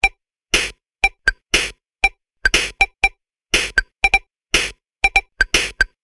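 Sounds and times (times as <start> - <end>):
rhythm loop: 0.5 - 1.8, 2.5 - 2.9, 3.5 - 6.0.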